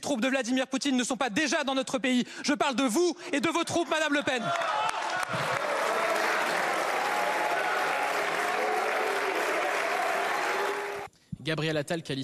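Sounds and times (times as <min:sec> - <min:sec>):
speech: 0:00.1 - 0:05.7, 0:11.4 - 0:12.2
jeering from the Rassemblement national benches: 0:04.0 - 0:11.1.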